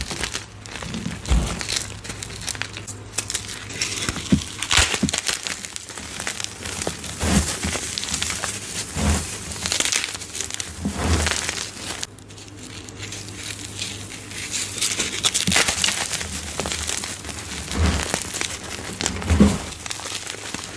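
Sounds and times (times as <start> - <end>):
dyed gym chalk bombs with soap, glitter and powder crushed: 0.0 - 20.7.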